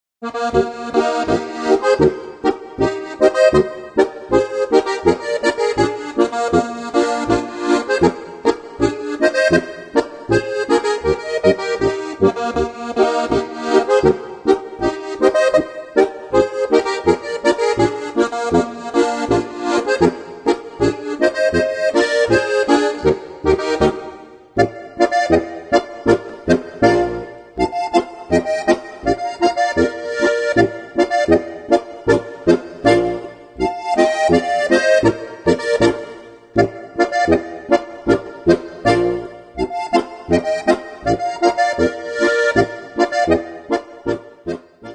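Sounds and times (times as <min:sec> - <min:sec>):
Bavarian boarischer folk dance music: 0:00.2 - 0:44.9.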